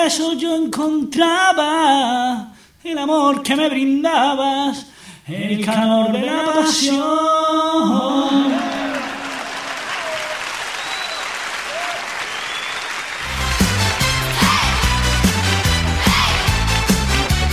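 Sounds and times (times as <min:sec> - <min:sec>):
speech: 0:00.0 - 0:08.7
crowd clapping: 0:08.6 - 0:17.5
music: 0:13.2 - 0:17.5.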